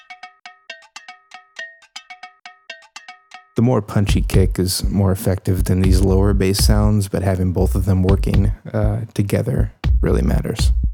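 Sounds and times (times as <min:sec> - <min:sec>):
looped bell percussion: 0:00.0 - 0:03.6
speech: 0:03.6 - 0:10.9.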